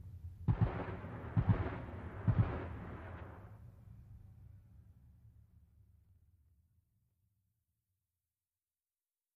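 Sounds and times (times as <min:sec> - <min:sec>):
.50 caliber machine gun firing: 0:00.5 - 0:03.4.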